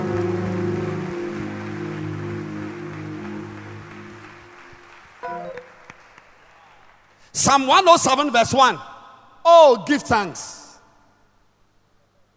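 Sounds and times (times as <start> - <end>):
audience clapping hands: 0.0 - 7.3
speech: 7.4 - 8.9, 9.5 - 10.6.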